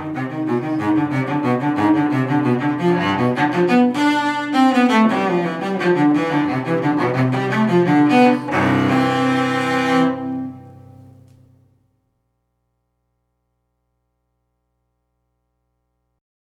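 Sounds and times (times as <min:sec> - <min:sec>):
cello suite courante: 0:00.0 - 0:11.7.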